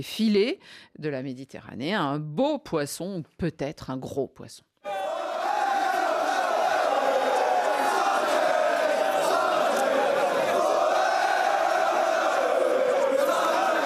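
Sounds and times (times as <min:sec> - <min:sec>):
speech: 0:00.0 - 0:04.7
about a thousand football supporters chanting at an airport: 0:04.8 - 0:13.8.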